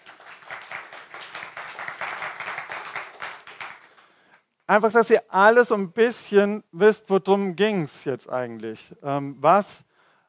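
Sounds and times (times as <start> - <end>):
audience applause: 0.0 - 4.0
speech: 4.7 - 9.9.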